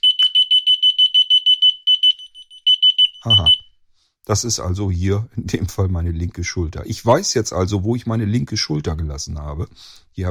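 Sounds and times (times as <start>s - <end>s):
small radio locator receiver beeping: 0.0s - 3.7s
speech: 3.2s - 3.6s, 4.3s - 10.2s.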